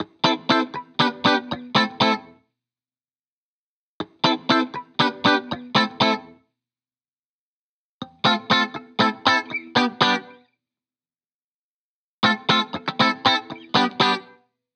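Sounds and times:
70s style guitars in A minor at 120 BPM: 0:00.0 - 0:02.3, 0:04.0 - 0:06.4, 0:08.0 - 0:10.4, 0:12.2 - 0:14.4.

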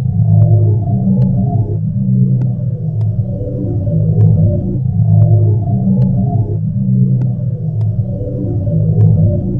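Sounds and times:
ethereal drone: 0:00.0 - 0:09.5.

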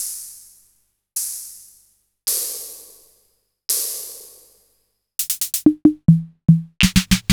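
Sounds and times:
disco music: 0:05.3 - 0:07.3.

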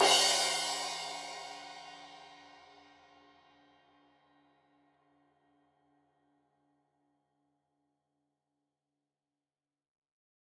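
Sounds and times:
15 inch crash cymbal edge hit: 0:00.0 - 0:02.2.

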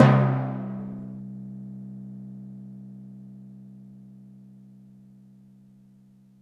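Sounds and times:
timpani on Roland JV-2080: 0:00.0 - 0:01.2.

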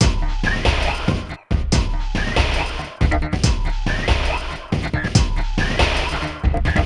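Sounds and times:
beat loop: 0:00.0 - 0:06.8.

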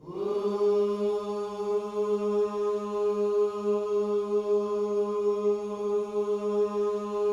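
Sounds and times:
gospel vocal whoo on G sharp 3: 0:00.0 - 0:07.3.

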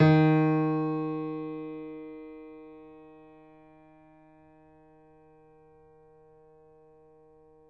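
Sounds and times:
piano: 0:00.0 - 0:07.6.

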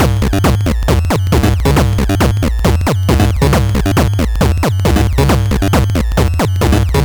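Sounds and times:
LSDJ Nintendo Gameboy chiptune loop: 0:00.0 - 0:07.0.

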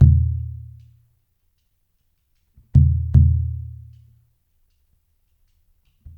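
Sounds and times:
deep drum: 0:00.0 - 0:00.7, 0:02.8 - 0:03.8.

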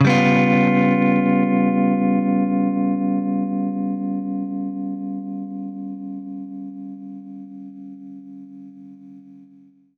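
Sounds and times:
baritone guitar G7b5 chord: 0:00.0 - 0:06.9.

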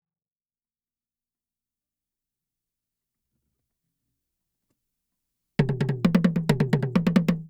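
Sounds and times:
Asian toy djembe and toms: 0:05.6 - 0:07.4.

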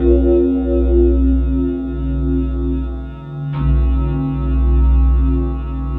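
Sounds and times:
Tundra synth pads: 0:00.0 - 0:05.8.

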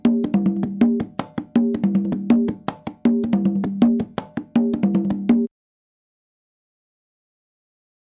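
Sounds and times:
salsa music: 0:00.1 - 0:05.5.

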